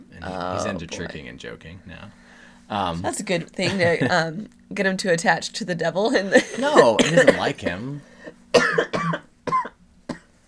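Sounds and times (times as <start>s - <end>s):
laughter: 0.2s - 1.2s, 3.6s - 4.3s, 6.4s - 7.8s
speech: 0.2s - 8.1s
harsh hacking coughs: 6.6s - 7.8s, 8.5s - 10.3s.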